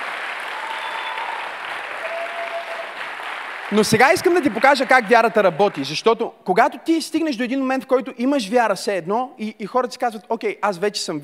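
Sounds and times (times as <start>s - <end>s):
audience clapping: 0.0s - 6.1s
speech: 3.7s - 11.2s.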